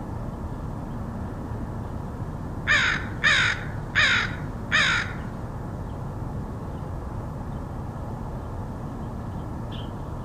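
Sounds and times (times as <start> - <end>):
low background hum: 0.0 - 10.2
crow cawing: 2.7 - 5.3.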